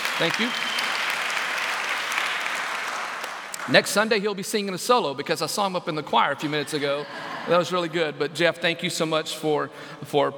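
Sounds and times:
room full of people clapping: 0:00.0 - 0:04.3
speech: 0:00.2 - 0:00.7, 0:03.7 - 0:10.3
laughter: 0:06.4 - 0:08.4.

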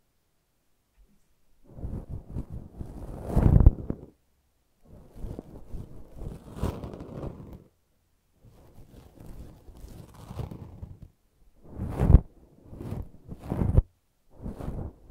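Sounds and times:
brushing and scratching: 0:01.7 - 0:04.1, 0:04.8 - 0:07.7, 0:08.4 - 0:15.0.

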